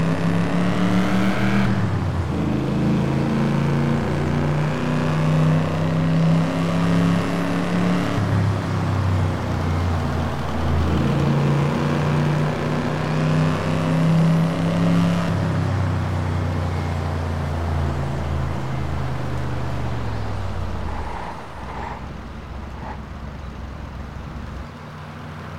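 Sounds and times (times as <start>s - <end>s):
Aston Martin DB4 GT Zagato car: 0.0s - 25.5s.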